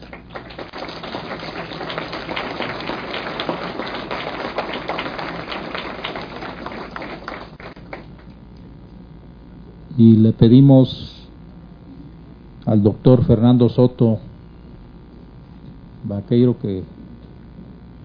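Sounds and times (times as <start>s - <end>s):
audience applause for speakers: 0.0s - 8.3s
speech: 10.0s - 11.1s, 12.7s - 14.3s, 16.1s - 17.0s.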